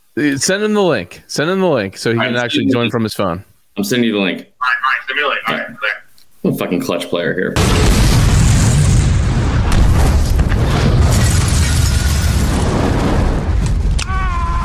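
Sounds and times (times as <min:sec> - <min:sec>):
speech: 0:00.2 - 0:08.2
explosion sound effect rumble with crackling debris: 0:07.6 - 0:14.6.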